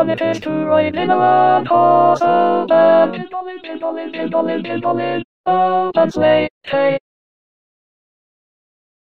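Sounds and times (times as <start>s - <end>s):
6-voice vocal ensemble singing: 0.0s - 7.0s.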